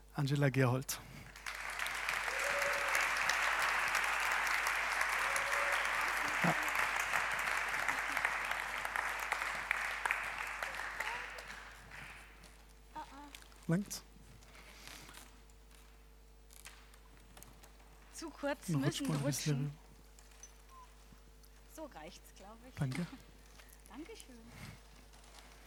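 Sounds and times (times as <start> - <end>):
speech: 0.2 - 1.2, 13.7 - 14.0, 18.4 - 19.8, 22.0 - 23.3, 23.9 - 24.9
audience applause: 1.2 - 12.6
laughter: 5.0 - 9.6.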